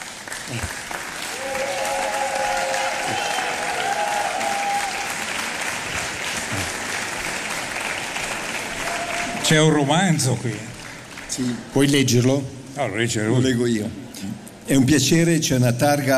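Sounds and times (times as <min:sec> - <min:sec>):
audience applause: 0:00.0 - 0:11.7
speech: 0:00.5 - 0:00.9, 0:09.5 - 0:10.7, 0:11.4 - 0:16.1.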